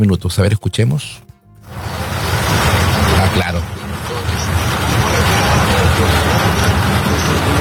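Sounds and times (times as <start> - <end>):
speech: 0.0 - 1.3, 2.5 - 3.8
heavy rain: 1.6 - 7.5.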